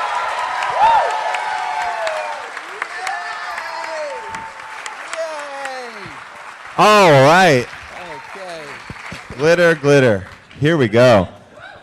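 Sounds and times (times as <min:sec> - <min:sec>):
studio audience whooping and shouting: 0:00.0 - 0:09.2
studio audience clapping welcoming a guest onto a show: 0:00.0 - 0:11.2
speech: 0:06.8 - 0:07.7, 0:09.4 - 0:11.4.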